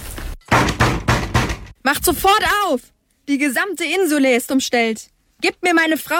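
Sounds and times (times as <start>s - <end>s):
heavy fists pounding on a wooden door: 0.5s - 1.7s
speech: 1.9s - 6.1s.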